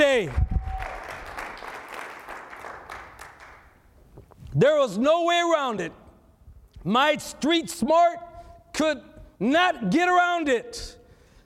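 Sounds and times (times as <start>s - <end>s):
audience clapping: 0.0s - 3.9s
speech: 0.2s - 0.5s, 4.6s - 6.0s, 6.8s - 11.0s.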